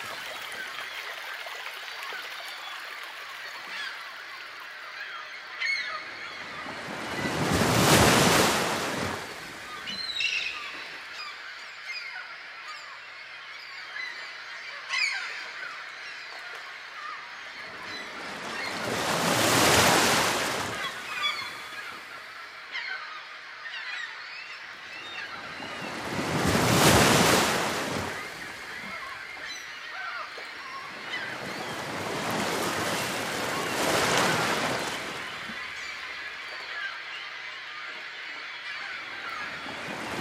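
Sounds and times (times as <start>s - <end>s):
ocean waves: 0.0s - 2.6s, 5.6s - 11.2s, 17.0s - 23.0s, 24.7s - 40.1s.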